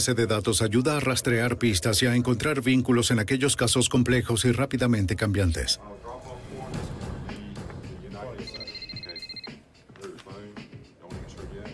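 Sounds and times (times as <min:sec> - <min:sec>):
speech: 0:00.0 - 0:06.2
telephone ringing: 0:08.4 - 0:09.6.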